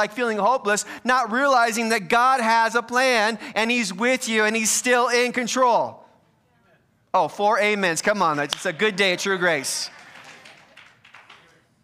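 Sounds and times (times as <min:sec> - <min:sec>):
speech: 0:00.0 - 0:06.0, 0:07.1 - 0:10.0
audience clapping: 0:08.3 - 0:11.8.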